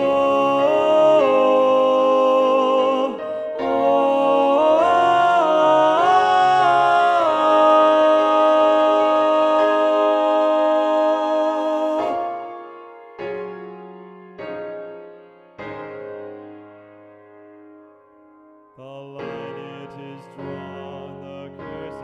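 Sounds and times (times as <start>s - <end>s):
tenor singing: 0.0s - 12.7s, 18.8s - 22.0s.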